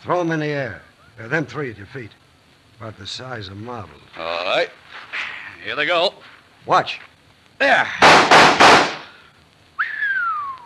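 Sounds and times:
speech: 0.0s - 2.2s, 2.8s - 5.0s, 5.6s - 8.9s
gunshots: 8.0s - 9.1s.

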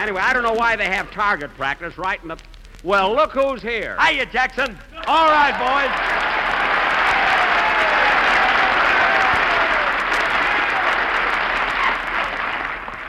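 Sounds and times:
speech: 0.0s - 6.1s
audience applause: 5.0s - 13.0s
faint whoops: 5.0s - 13.0s.

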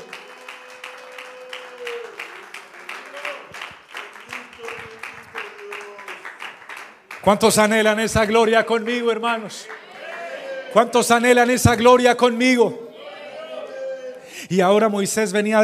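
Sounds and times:
audience applause: 0.0s - 7.9s, 9.6s - 10.9s
speech: 7.2s - 9.8s, 10.8s - 12.8s, 14.5s - 15.6s.

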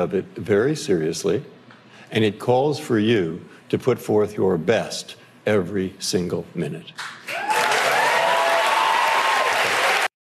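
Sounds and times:
speech: 0.0s - 7.2s
studio audience at the Colbert show applauding and cheering: 7.2s - 10.1s.

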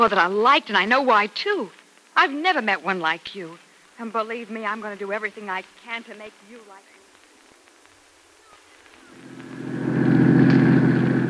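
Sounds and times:
speech: 0.0s - 7.0s
car engine droning driving up a hill: 9.2s - 11.2s.

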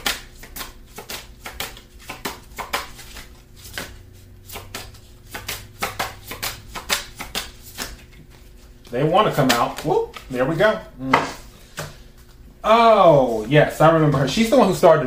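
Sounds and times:
tarot cards being shuffled: 0.0s - 10.6s
speech: 8.9s - 11.4s, 12.7s - 15.0s.

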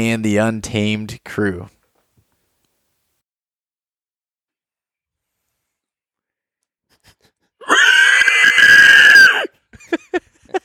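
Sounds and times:
speech: 0.0s - 1.8s
man imitating a hog squeal: 7.6s - 9.5s.

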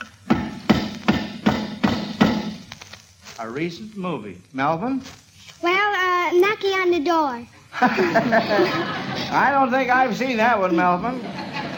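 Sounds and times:
hammer pounding in nails: 0.3s - 2.7s
speech: 3.4s - 11.4s
laughter: 7.7s - 9.8s, 10.4s - 11.7s.

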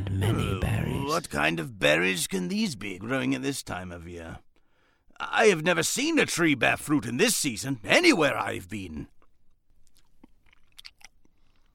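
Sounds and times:
speech: 0.1s - 0.6s, 1.2s - 4.5s, 5.2s - 9.2s
person chewing a cherry: 9.1s - 11.7s.

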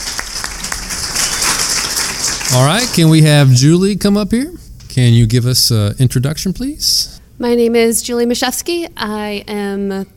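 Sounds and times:
audience applause: 0.0s - 3.6s
speech: 2.5s - 10.1s.

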